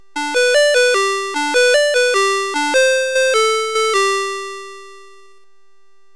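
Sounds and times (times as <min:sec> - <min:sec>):
SID6581 synthesizer chip music: 0:00.2 - 0:05.0.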